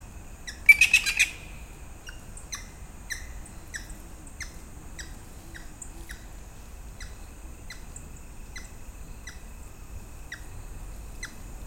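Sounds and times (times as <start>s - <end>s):
grey-headed woodpecker Picus canus calls: 0.5s - 6.3s, 7.0s - 9.5s, 10.3s - 10.6s, 11.2s - 11.5s.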